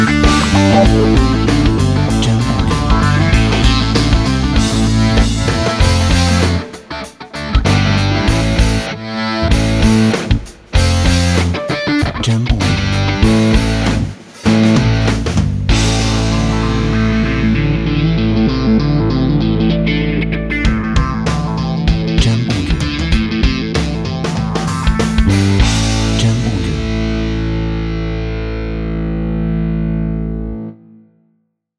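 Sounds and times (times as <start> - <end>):
rock background music: 0.0 - 30.8.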